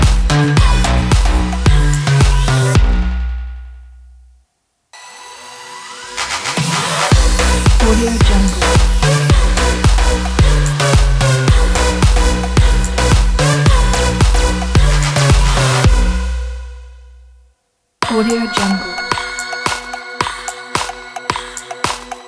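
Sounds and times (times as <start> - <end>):
energetic sport dance beat: 0.0 - 3.1, 6.3 - 16.3, 18.0 - 22.2.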